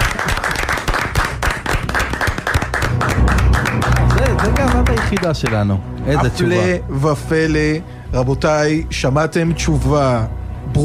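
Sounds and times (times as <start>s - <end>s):
audience applause at a Torah quiz event: 0.0s - 5.8s
speech: 5.2s - 10.8s.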